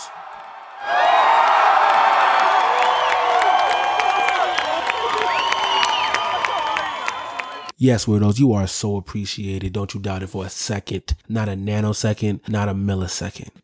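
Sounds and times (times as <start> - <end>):
large crowd cheering with whoops and shouts: 0.0 - 7.7
speech: 7.8 - 13.6.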